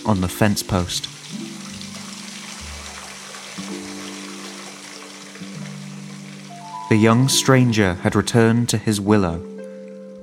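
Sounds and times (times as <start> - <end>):
watering can filling from a tap: 0.0 - 6.7
speech: 0.1 - 1.4, 6.9 - 9.5.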